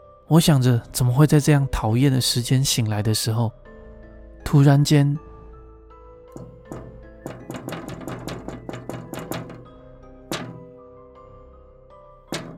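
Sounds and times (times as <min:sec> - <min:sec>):
speech: 0:00.3 - 0:03.6, 0:04.5 - 0:05.3
light knocks on a window pane: 0:06.3 - 0:10.8, 0:12.3 - 0:12.5.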